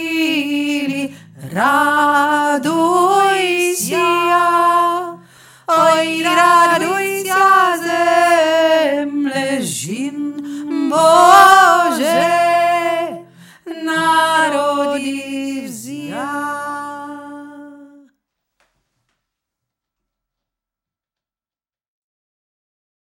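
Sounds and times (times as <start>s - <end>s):
Ukrainian Christmas song lead vocal: 0.0s - 18.1s.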